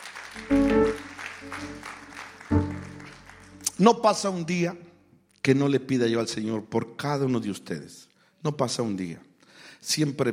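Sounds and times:
audience applause: 0.0s - 3.8s
loud sustained musical chords: 0.4s - 3.7s
speech: 3.8s - 10.3s.

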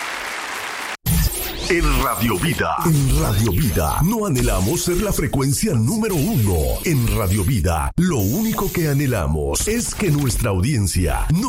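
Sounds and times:
audience applause: 0.0s - 1.0s
speech: 1.7s - 11.4s.

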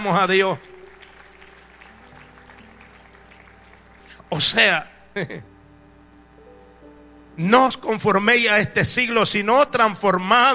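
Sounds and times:
speech: 0.0s - 0.7s, 4.3s - 5.5s, 7.4s - 10.5s
audience applauding: 0.0s - 5.2s.

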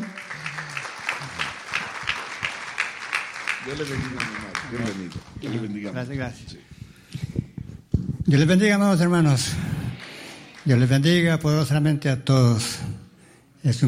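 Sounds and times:
audience applause: 0.0s - 5.9s, 9.3s - 11.7s
speech: 3.6s - 6.7s, 8.3s - 9.7s, 10.6s - 12.8s, 13.6s - 13.8s.

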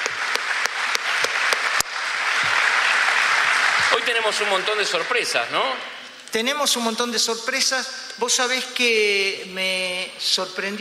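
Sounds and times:
applause: 0.0s - 5.5s
speech: 4.1s - 10.7s.

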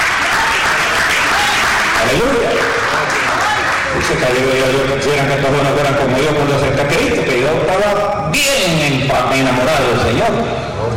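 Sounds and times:
audience applauding: 0.0s - 4.9s
speech: 4.1s - 10.9s.

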